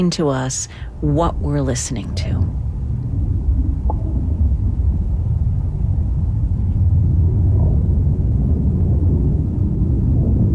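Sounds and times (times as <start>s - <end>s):
speech: 0.0s - 2.7s
storm in an old-growth forest: 2.3s - 10.5s.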